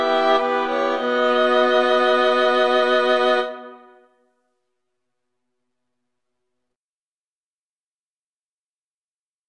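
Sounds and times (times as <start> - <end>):
violin quartet playing: 0.0 - 3.9.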